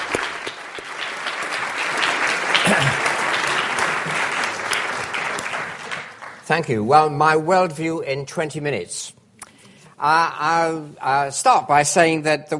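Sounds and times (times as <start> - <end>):
audience applause: 0.0 - 6.5
speech: 6.5 - 9.1, 10.0 - 12.5.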